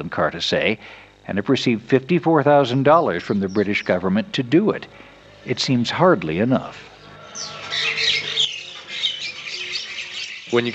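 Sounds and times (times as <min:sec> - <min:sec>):
speech: 0:00.0 - 0:07.9, 0:10.5 - 0:10.7
colony of cackling birds: 0:03.0 - 0:10.7.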